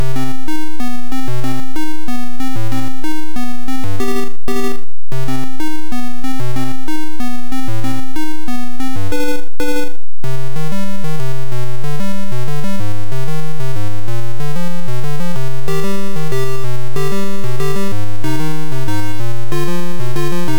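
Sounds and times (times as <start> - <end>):
Amstrad CPC in-game music: 0.0 - 20.5.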